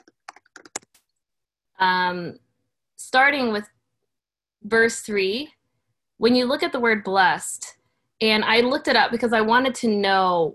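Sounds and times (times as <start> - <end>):
typing on a computer keyboard: 0.0 - 1.0
speech: 1.8 - 2.4, 3.0 - 3.8, 4.6 - 5.6, 6.2 - 10.5.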